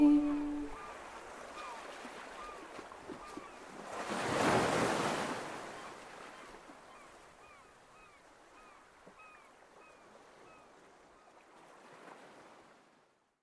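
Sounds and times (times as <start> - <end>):
bucket with sea water: 0.7 - 6.9, 10.1 - 13.1.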